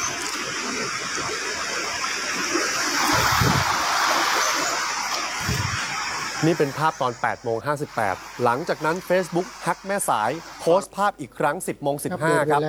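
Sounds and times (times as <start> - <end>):
floodwater gushing up through a wastewater drain pipe in Mae Sai: 0.0 - 7.0, 7.8 - 10.6
speech: 6.4 - 12.6.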